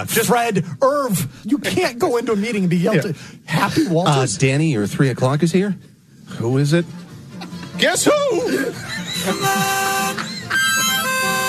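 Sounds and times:
speech: 0:00.0 - 0:07.0, 0:07.8 - 0:09.9
laughter: 0:07.4 - 0:11.4
horn honking: 0:09.2 - 0:11.4.

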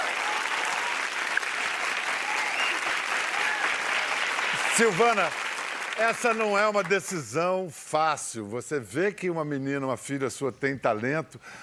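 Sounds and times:
audience applause: 0:00.0 - 0:07.3
speech: 0:04.8 - 0:05.4, 0:06.0 - 0:11.6.

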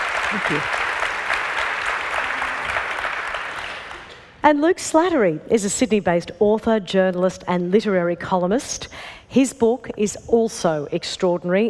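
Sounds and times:
audience applause welcoming a speaker: 0:00.0 - 0:04.2
speech: 0:00.3 - 0:00.8, 0:04.4 - 0:11.6.

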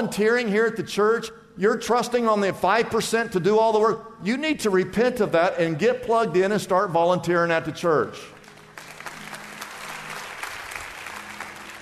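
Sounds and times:
speech: 0:00.0 - 0:08.4
few people clapping: 0:08.3 - 0:11.8.

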